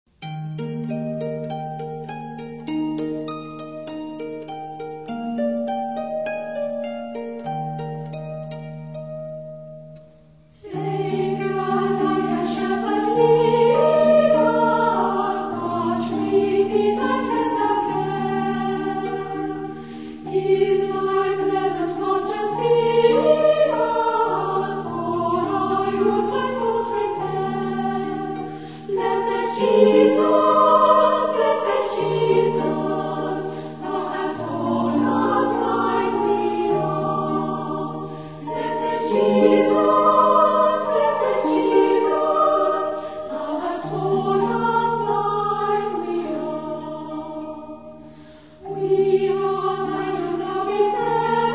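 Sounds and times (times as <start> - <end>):
orchestra: 0.2 - 51.5
choir: 10.5 - 51.5.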